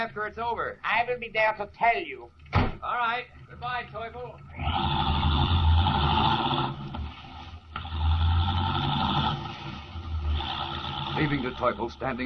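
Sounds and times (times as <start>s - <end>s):
speech: 0.0s - 5.2s, 11.2s - 12.2s
car engine driving rapidly away in a radio drama effect: 4.2s - 12.2s.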